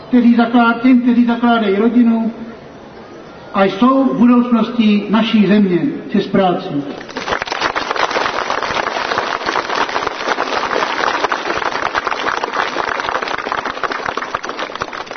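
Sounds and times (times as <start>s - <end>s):
speech: 0.1s - 2.5s, 3.5s - 7.1s
audience applause: 7.1s - 15.1s.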